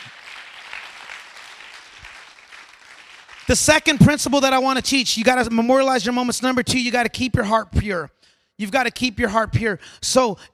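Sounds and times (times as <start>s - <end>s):
audience clapping: 0.0s - 4.4s
speech: 3.5s - 10.5s.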